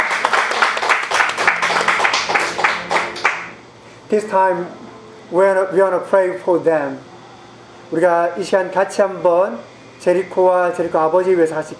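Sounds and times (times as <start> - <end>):
congregation applauding in welcome for a visiting father and son: 0.0 - 3.6
speech: 4.1 - 7.1, 7.9 - 11.7.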